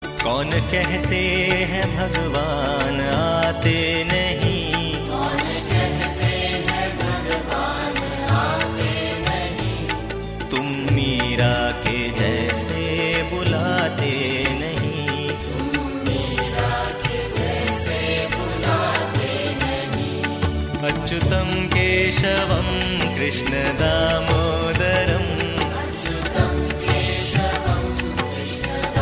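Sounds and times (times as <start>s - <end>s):
bhajan devotional song: 0.0s - 29.0s.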